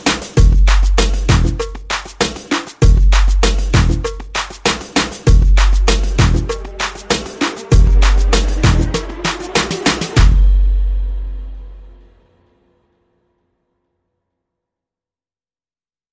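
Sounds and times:
drums: 0.0 - 12.0
bass: 0.4 - 2.0, 2.8 - 4.5, 5.3 - 6.8, 7.7 - 9.3, 10.2 - 12.0.

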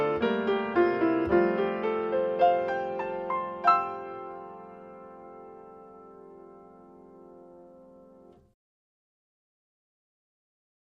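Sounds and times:
solo piano carol: 0.0 - 8.6.

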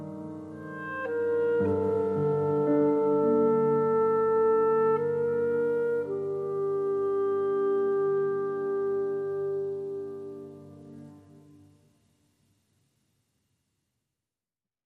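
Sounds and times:
clarinet: 0.0 - 11.7
piano: 0.0 - 12.5.

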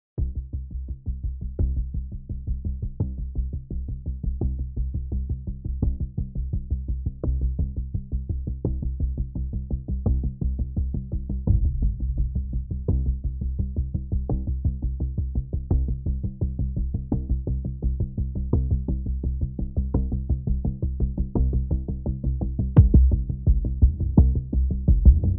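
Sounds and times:
bass: 0.0 - 25.3
drums: 0.2 - 25.3.

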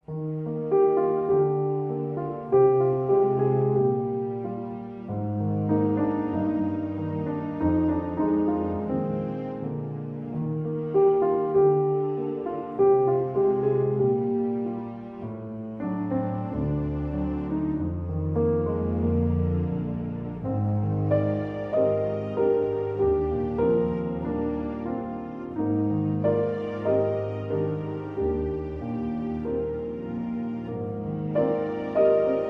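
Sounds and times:
strings: 0.0 - 32.4.

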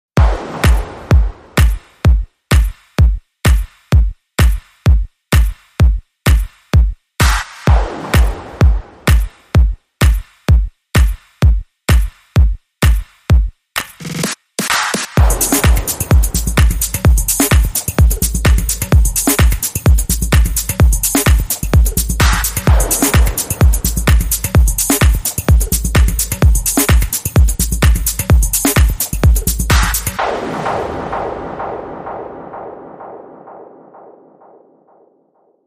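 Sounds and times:
music beat: 0.2 - 35.6.

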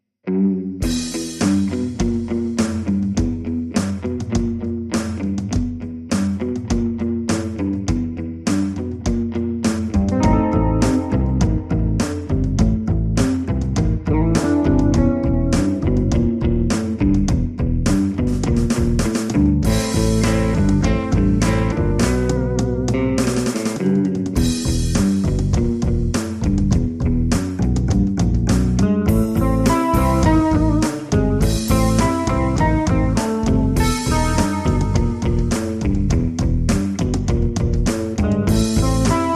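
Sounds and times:
blues music: 0.2 - 39.3.

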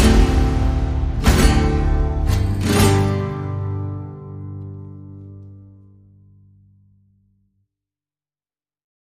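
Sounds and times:
percussion: 0.0 - 5.6
strummed strings: 0.0 - 6.3.

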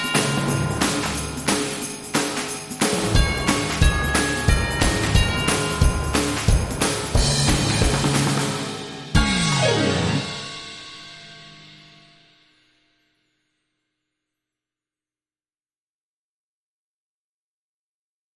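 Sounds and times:
joyful Christmas tune: 0.0 - 11.3.

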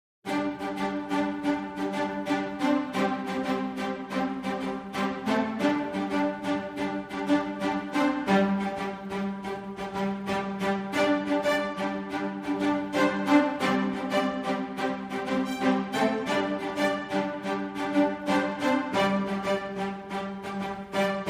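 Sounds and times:
strings: 0.3 - 21.2.

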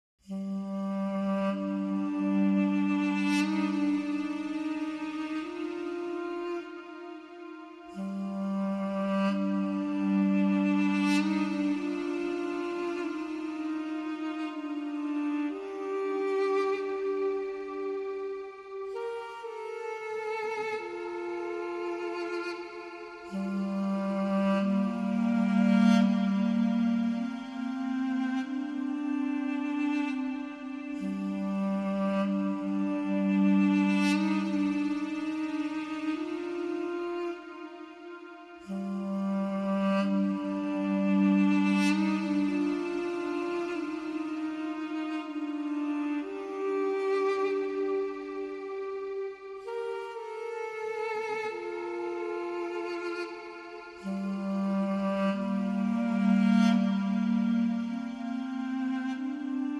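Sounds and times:
duduk: 0.0 - 59.7.

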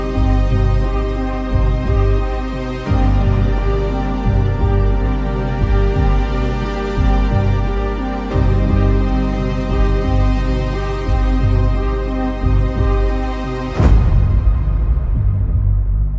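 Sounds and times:
percussion: 0.0 - 16.1
synths: 0.0 - 16.1.

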